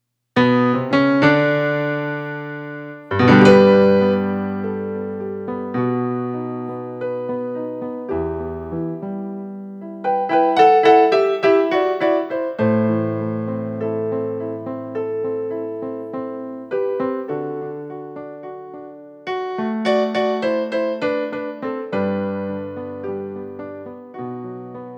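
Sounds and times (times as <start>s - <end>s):
piano: 0.4s - 24.9s.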